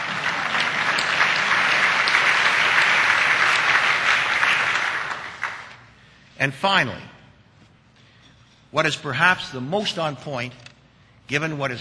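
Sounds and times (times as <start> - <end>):
audience applause: 0.0 - 5.8
speech: 6.4 - 7.1, 8.7 - 10.7, 11.3 - 11.7.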